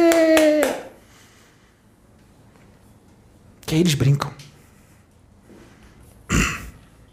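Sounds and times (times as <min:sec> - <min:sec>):
hand clapping: 0:00.0 - 0:01.0
speech: 0:03.7 - 0:04.4.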